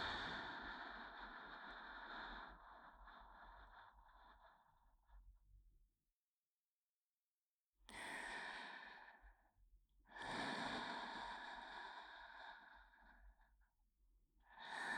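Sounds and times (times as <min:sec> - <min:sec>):
breathing in the left ear: 0:00.0 - 0:05.2, 0:07.9 - 0:13.8, 0:14.4 - 0:14.9.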